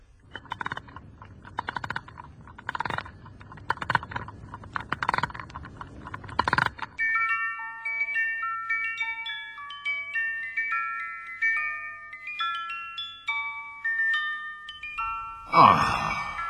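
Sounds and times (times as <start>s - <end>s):
key winding a clockwork mechanism: 0.3s - 7.0s
tinkling mechanical melody: 1.4s - 16.4s.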